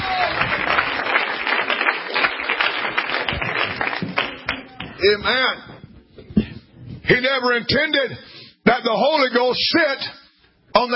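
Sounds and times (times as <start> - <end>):
audience clapping: 0.0 - 5.2
speech: 5.0 - 5.7, 7.1 - 10.2, 10.8 - 10.9.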